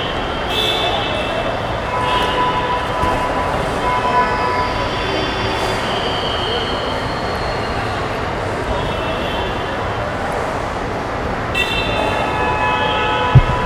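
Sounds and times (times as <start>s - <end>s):
airport street ambience in South India: 0.0s - 13.6s.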